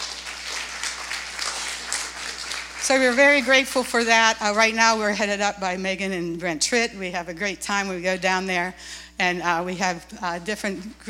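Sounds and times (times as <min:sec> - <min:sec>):
church congregation applauding soup kitchen volunteers: 0:00.0 - 0:04.8
low constant hum: 0:00.0 - 0:11.0
speech: 0:02.8 - 0:11.0.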